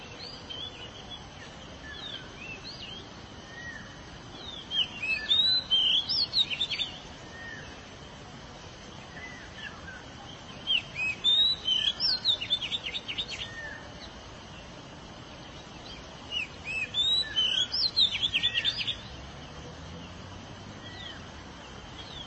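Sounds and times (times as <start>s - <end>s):
Oriental magpie-robin song: 0.0s - 7.8s, 9.0s - 14.3s, 15.4s - 19.2s
background hiss: 0.0s - 22.2s.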